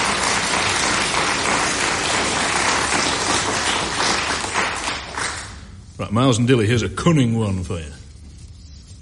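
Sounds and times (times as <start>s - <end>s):
crowd applause: 0.0s - 5.7s
speech: 6.1s - 8.0s.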